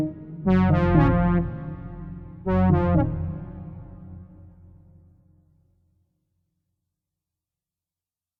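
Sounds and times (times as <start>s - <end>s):
old simulation game music: 0.0s - 4.6s.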